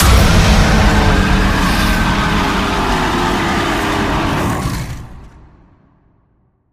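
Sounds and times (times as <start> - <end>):
behemoth hit: 0.0 - 5.2.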